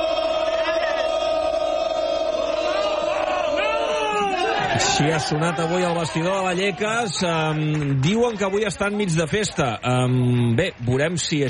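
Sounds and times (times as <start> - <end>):
football fans chanting team name in a stadium: 0.0 - 6.8
speech: 5.0 - 11.4.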